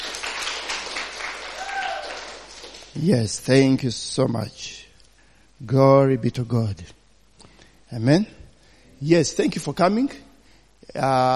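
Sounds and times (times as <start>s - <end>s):
audience hand clapping: 0.0s - 3.0s
speech: 3.0s - 4.8s, 5.6s - 7.0s, 7.9s - 8.4s, 9.0s - 10.2s, 10.9s - 11.3s.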